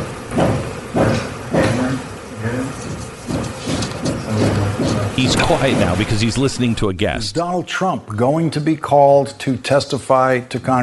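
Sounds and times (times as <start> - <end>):
hammering in another room: 0.0 - 2.1, 2.8 - 6.3
speech: 5.2 - 10.8.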